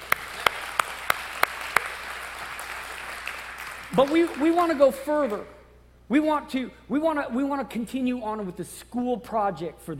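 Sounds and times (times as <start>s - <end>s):
audience applauding: 0.0s - 4.9s
speech: 3.9s - 9.9s.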